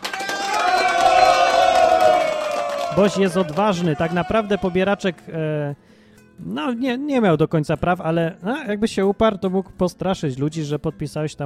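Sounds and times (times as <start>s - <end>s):
crowd cheering and applauding: 0.0s - 5.2s
whoops and shouting voices: 0.0s - 5.2s
speech: 3.0s - 11.4s.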